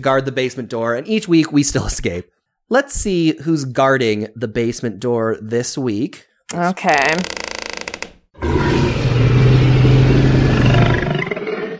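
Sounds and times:
speech: 0:00.0 - 0:07.5
T-Rex roar: 0:08.4 - 0:11.7.

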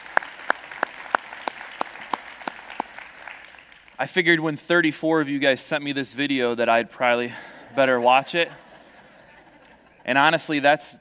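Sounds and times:
audience applause: 0:00.0 - 0:04.0
speech: 0:04.0 - 0:08.6, 0:10.1 - 0:10.9
laughter: 0:07.1 - 0:10.6.

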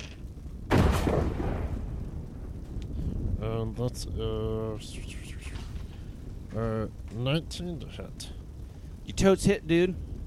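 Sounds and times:
gunshot sound effect: 0:00.7 - 0:01.8
speech: 0:03.6 - 0:05.4, 0:06.6 - 0:08.4, 0:09.1 - 0:10.1.

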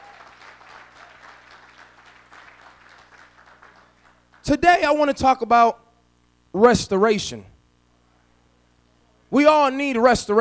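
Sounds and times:
audience applause: 0:00.0 - 0:04.4
speech: 0:04.5 - 0:05.8, 0:06.5 - 0:07.5, 0:09.3 - 0:10.3.

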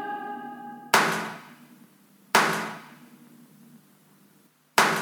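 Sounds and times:
gunshots from a stage recording: 0:00.9 - 0:01.7, 0:02.4 - 0:03.1, 0:04.8 - 0:05.0.

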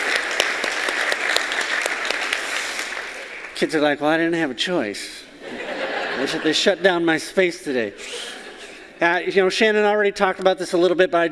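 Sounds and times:
audience applause at a morning service welcoming children: 0:00.0 - 0:03.6
speech: 0:03.6 - 0:08.2, 0:09.0 - 0:11.3
laughter: 0:05.4 - 0:06.8, 0:07.9 - 0:09.0.

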